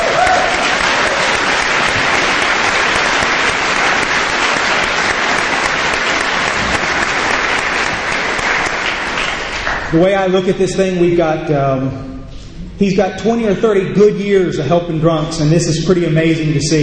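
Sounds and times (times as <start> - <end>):
audience applause: 0.0 - 10.0
speech: 9.9 - 12.2, 12.8 - 16.8.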